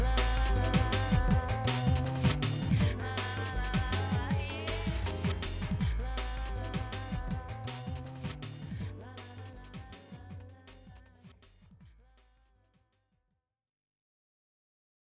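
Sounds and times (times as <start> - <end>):
rumba music: 0.0 - 11.1.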